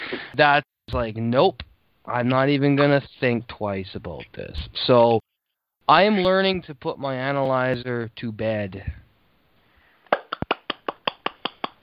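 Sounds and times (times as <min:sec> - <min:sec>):
speech: 0:00.1 - 0:05.3, 0:05.9 - 0:09.0
clapping: 0:10.1 - 0:11.8.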